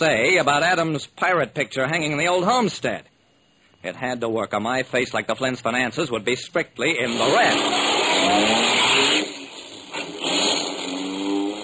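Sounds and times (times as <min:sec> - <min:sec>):
speech: 0:00.0 - 0:03.1, 0:03.8 - 0:09.1
car driving off with engine revving: 0:07.1 - 0:11.6.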